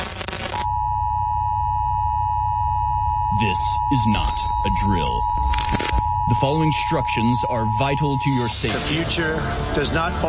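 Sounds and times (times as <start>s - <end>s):
harsh static: 0.0s - 0.7s, 3.3s - 10.2s
low rumbling hum: 0.0s - 9.8s
emergency broadcast alert tone: 0.1s - 10.2s
speech: 3.4s - 10.2s.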